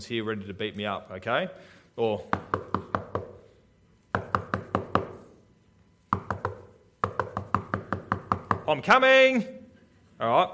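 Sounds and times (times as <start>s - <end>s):
speech: 0.0s - 2.7s, 8.7s - 9.6s, 10.2s - 10.5s
knocking on a door: 4.2s - 5.2s, 6.1s - 8.7s.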